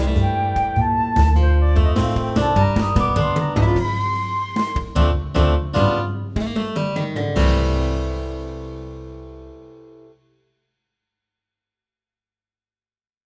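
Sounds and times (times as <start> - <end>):
MIDI blues music: 0.0 - 9.6.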